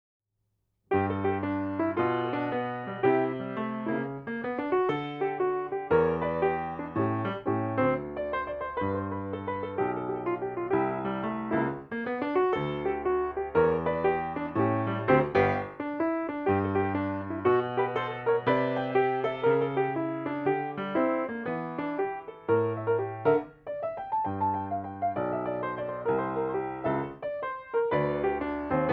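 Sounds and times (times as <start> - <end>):
jazz exercise: 0.9 - 28.9.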